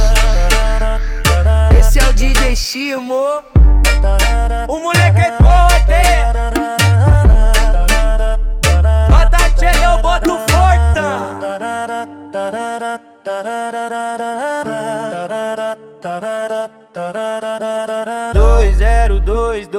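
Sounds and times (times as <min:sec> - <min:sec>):
funk bass: 0:00.0 - 0:02.6, 0:03.6 - 0:11.0, 0:18.4 - 0:19.5.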